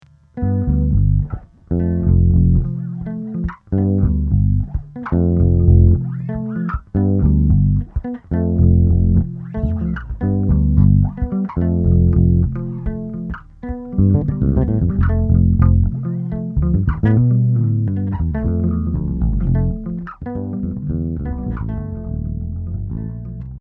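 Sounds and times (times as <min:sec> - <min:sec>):
bass: 0:00.0 - 0:23.5.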